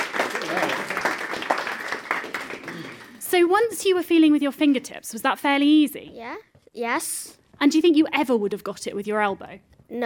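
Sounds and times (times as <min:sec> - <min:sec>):
small audience applause: 0:00.0 - 0:03.2
speech: 0:03.3 - 0:10.0.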